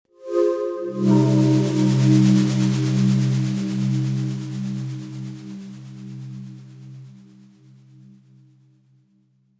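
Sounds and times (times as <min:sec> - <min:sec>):
synth pad: 0:00.2 - 0:06.4.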